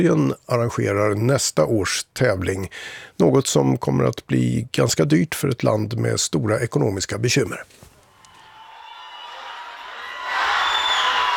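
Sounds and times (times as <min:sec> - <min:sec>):
speech: 0:00.0 - 0:07.9
fans cheering and applauding at homecoming: 0:08.2 - 0:11.3.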